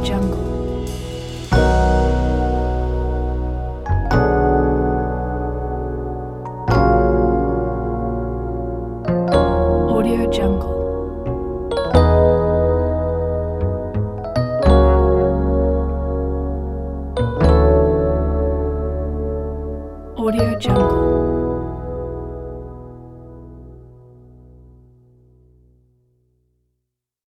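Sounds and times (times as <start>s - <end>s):
smooth lounge jazz: 0.0s - 24.0s.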